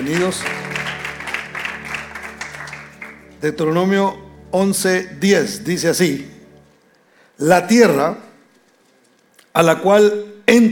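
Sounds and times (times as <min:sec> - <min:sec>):
speech: 0:00.0 - 0:00.6, 0:03.4 - 0:06.4, 0:07.4 - 0:08.2, 0:09.6 - 0:10.7
audience applauding: 0:00.0 - 0:03.4.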